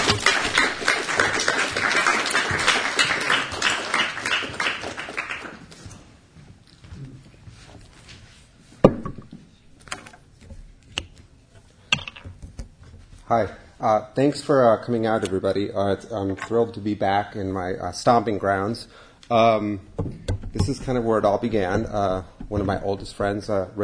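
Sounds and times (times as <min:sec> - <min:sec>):
audience applause welcoming speaker: 0:00.0 - 0:05.7
speech: 0:13.3 - 0:23.8.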